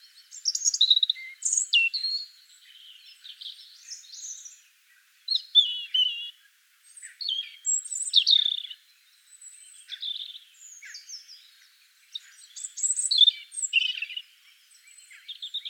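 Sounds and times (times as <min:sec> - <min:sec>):
European robin Erithacus rubecula singing: 0:00.0 - 0:15.6.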